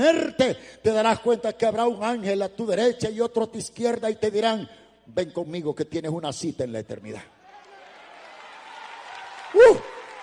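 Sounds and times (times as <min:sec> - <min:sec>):
speech: 0:00.0 - 0:07.4, 0:09.5 - 0:09.9
audience applauding: 0:07.4 - 0:10.2.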